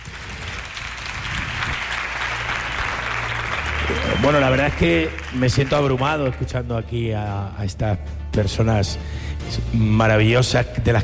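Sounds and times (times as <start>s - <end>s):
audience applause: 0.0s - 6.6s
speech: 4.2s - 11.0s.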